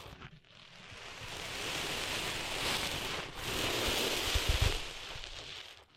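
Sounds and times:
sand being cleaned out of ears: 0.0 - 5.8
hissing rushes: 1.1 - 5.7.

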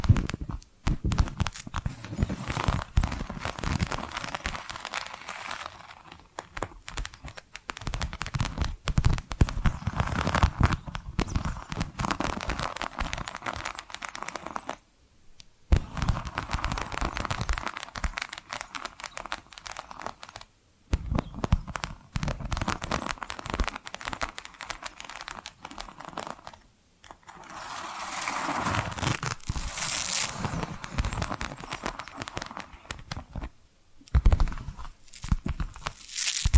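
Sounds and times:
tapping and scratching: 0.0 - 14.8, 15.7 - 33.5, 34.1 - 36.5
bright hissing scrape: 27.2 - 32.7.

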